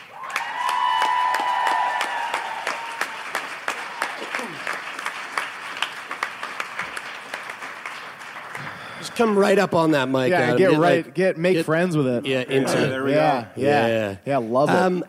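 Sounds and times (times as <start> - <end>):
audience applause: 0.0 - 10.5
speech: 9.2 - 15.0.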